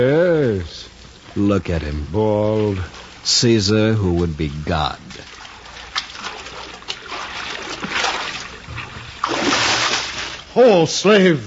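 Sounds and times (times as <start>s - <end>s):
speech: 0.0s - 5.4s, 10.6s - 11.4s
man swimming and splashing: 2.0s - 10.5s.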